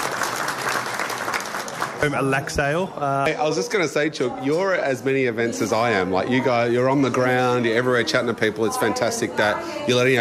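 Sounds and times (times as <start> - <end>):
applause for a community club's 35 years: 0.0 - 2.6
speech: 2.0 - 10.1.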